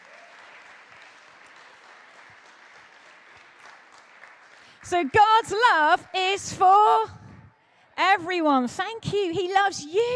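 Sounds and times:
audience round of applause: 0:00.0 - 0:06.0
speech: 0:04.9 - 0:07.2, 0:08.0 - 0:10.1.

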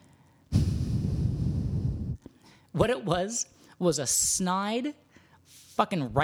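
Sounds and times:
voice imitating a slow satisfied exhale through the nose: 0:00.5 - 0:02.6
speech: 0:02.8 - 0:06.2.

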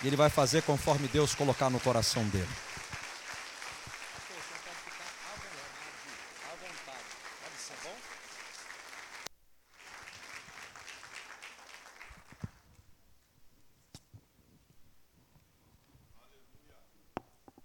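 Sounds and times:
speech: 0:00.0 - 0:02.8
audience applause: 0:00.0 - 0:12.6.

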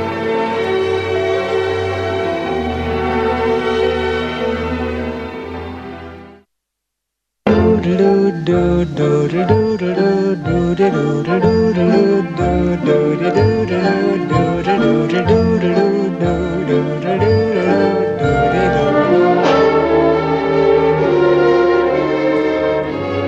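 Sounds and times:
orchestral backing: 0:00.0 - 0:06.4, 0:07.5 - 0:23.2
man singing a show tune from a film musical: 0:07.5 - 0:19.7.

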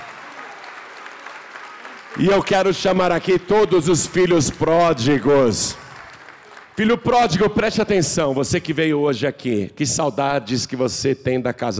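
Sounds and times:
church audience applauding: 0:00.0 - 0:07.5
speech: 0:02.1 - 0:05.8, 0:06.8 - 0:11.7.

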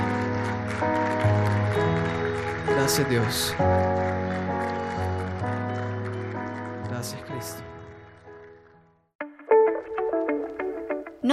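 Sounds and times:
audience applauding: 0:00.0 - 0:08.8
sustained keyboard chords: 0:00.0 - 0:11.3
speech: 0:02.9 - 0:04.4.

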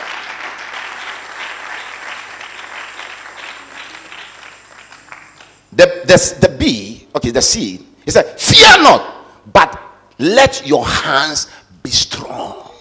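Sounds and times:
audience clapping: 0:00.0 - 0:05.8
speech: 0:05.8 - 0:12.1.

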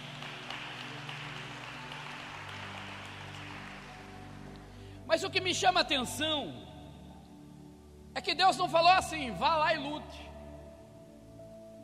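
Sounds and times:
applause: 0:00.0 - 0:04.8
speech: 0:05.1 - 0:06.7, 0:08.2 - 0:10.3.

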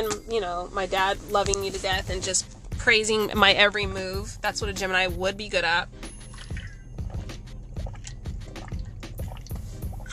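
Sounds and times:
speech: 0:00.0 - 0:06.1
person drinking water: 0:06.4 - 0:10.1.

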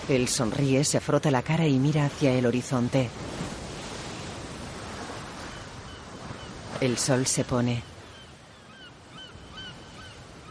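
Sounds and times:
sea waves washing onto a beach: 0:00.0 - 0:10.5
speech: 0:00.1 - 0:03.4, 0:06.8 - 0:07.9.

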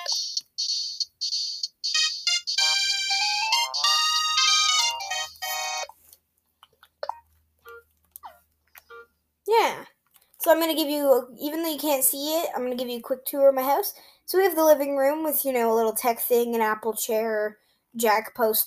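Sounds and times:
Dixieland-style video game music track: 0:00.0 - 0:05.9
speech: 0:10.5 - 0:18.6.

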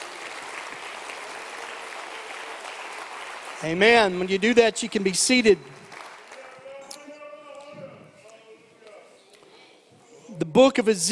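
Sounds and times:
audience clapping hands: 0:00.0 - 0:07.8
speech: 0:03.6 - 0:05.8, 0:10.6 - 0:11.1.

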